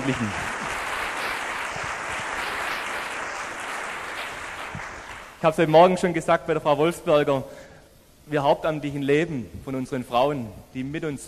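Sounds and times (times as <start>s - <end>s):
welcoming applause: 0.0s - 5.4s
speech: 0.1s - 0.5s, 5.4s - 7.6s, 8.3s - 11.2s.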